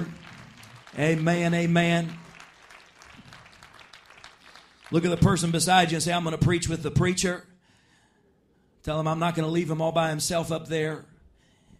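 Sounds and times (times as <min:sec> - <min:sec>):
audience clapping hands: 0:00.0 - 0:06.6
speech: 0:01.0 - 0:02.2, 0:04.9 - 0:07.5, 0:08.8 - 0:11.1.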